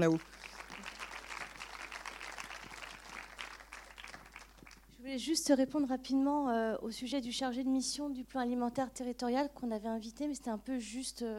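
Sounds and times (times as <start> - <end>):
speech: 0.0 - 0.4, 5.1 - 11.3
crowd applauding: 0.0 - 4.9.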